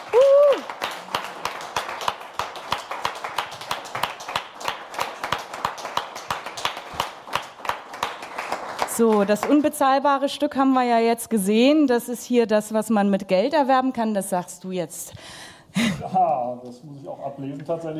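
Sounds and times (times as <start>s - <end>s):
vocal whoop: 0.0s - 0.7s
audience applause: 0.0s - 9.8s
speech: 9.0s - 17.9s.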